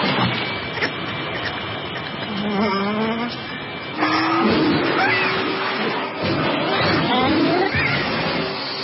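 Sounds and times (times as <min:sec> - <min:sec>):
vacuum cleaner running: 0:00.0 - 0:08.8.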